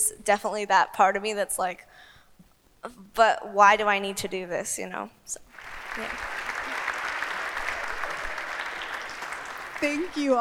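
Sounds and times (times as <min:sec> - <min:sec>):
speech: 0:00.1 - 0:02.1, 0:02.8 - 0:06.4, 0:09.8 - 0:10.3
audience applause: 0:05.5 - 0:10.3.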